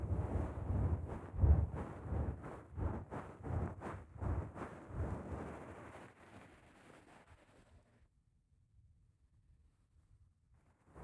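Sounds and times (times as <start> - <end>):
fluffy glove massage: 0.1 - 7.8.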